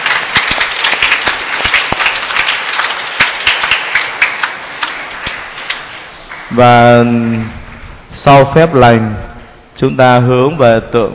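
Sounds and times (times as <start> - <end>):
loud applause from audience: 0.0 - 7.8
speech: 6.6 - 7.6, 8.2 - 11.1.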